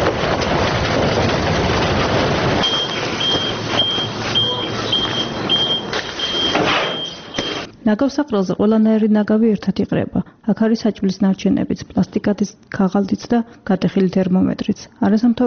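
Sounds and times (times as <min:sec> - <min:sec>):
garbage truck collecting waste clattering: 0:00.0 - 0:07.7
garbage truck engine rumble: 0:00.0 - 0:07.7
garbage truck reversing beeps: 0:02.6 - 0:07.7
speech: 0:07.9 - 0:15.4.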